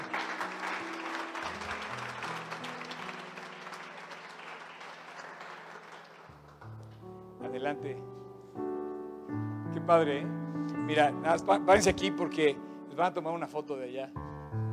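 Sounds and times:
audience applause: 0.0s - 6.8s
speech: 7.5s - 8.2s, 9.8s - 14.2s.

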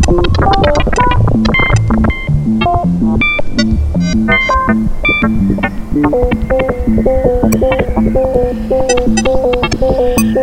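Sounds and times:
two cycling sine-wave tones sequenced in Max MSP: 0.0s - 10.4s.

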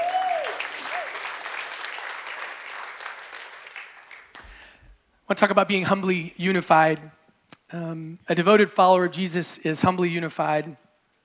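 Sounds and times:
large group clapping: 0.0s - 4.9s
speech: 5.3s - 10.8s.

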